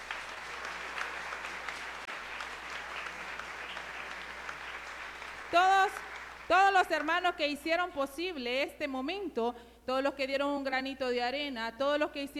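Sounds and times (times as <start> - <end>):
audience applauding: 0.0 - 7.4
speech: 5.5 - 12.3.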